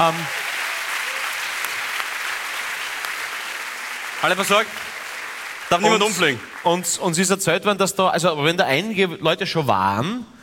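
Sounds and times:
speech: 0:00.0 - 0:00.4, 0:04.2 - 0:04.9, 0:05.7 - 0:10.4
audience applause: 0:00.0 - 0:07.3.

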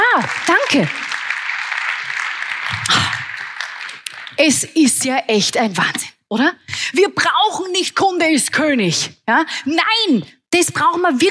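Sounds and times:
audience applause: 0:00.0 - 0:04.4
speech: 0:00.2 - 0:01.0, 0:04.4 - 0:11.2.

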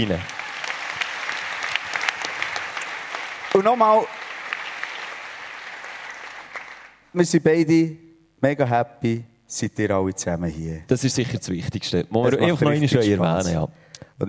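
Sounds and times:
speech: 0:00.0 - 0:00.4, 0:03.6 - 0:04.2, 0:07.1 - 0:14.2
audience applause: 0:00.0 - 0:07.0.

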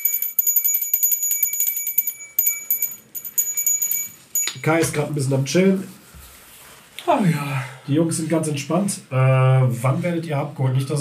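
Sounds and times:
small hand bell being rung: 0:00.0 - 0:04.9
speech: 0:04.6 - 0:06.0, 0:07.1 - 0:10.9.

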